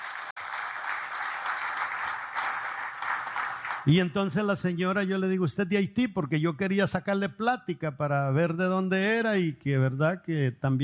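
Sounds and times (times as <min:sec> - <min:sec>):
audience applause: 0:00.0 - 0:03.9
speech: 0:03.8 - 0:10.8.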